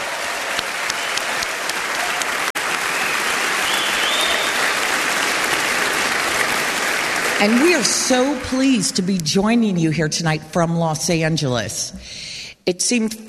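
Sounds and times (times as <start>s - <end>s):
audience applause: 0.0s - 8.9s
speech: 7.4s - 13.2s.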